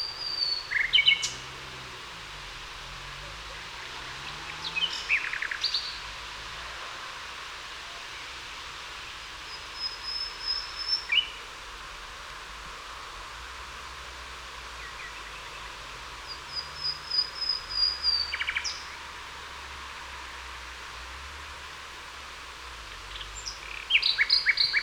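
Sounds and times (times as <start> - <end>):
common nightingale Luscinia megarhynchos singing: 0.0 - 1.6, 3.5 - 6.1, 9.4 - 11.5, 14.7 - 19.1, 22.9 - 24.8.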